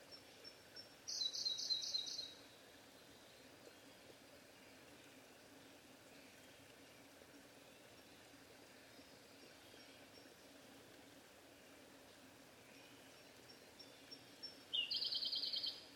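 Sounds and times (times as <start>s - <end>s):
Siberian blue robin singing: 0.2s - 2.4s, 13.8s - 15.9s.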